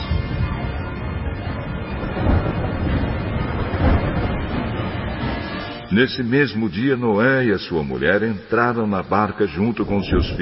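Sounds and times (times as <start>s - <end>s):
thunder: 0.0s - 5.9s
rainstorm: 0.0s - 10.4s
speech: 5.9s - 10.4s.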